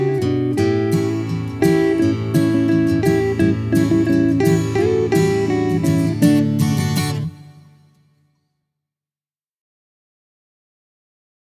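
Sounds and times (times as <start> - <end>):
karaoke singing: 0.0 - 6.4.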